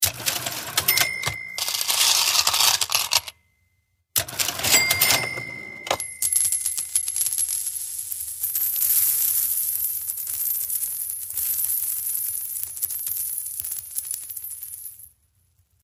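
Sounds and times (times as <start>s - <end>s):
cash register: 0.0s - 3.4s, 4.2s - 7.0s
coins clinking: 0.0s - 3.4s, 4.2s - 15.1s.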